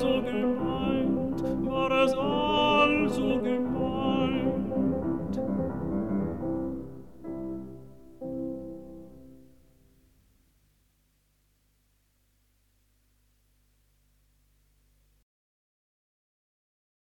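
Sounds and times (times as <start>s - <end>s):
piano: 0.0s - 10.4s.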